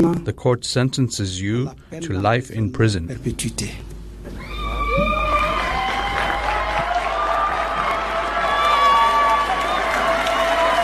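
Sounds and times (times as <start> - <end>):
speech: 0.0 - 3.9
courtroom crowd cheering: 4.3 - 10.8.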